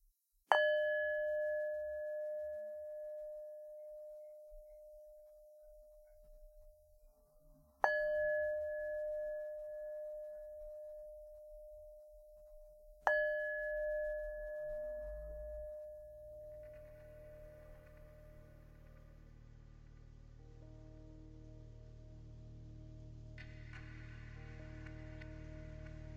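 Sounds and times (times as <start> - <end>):
meditation bowl struck to close a practice: 0.5 - 19.1.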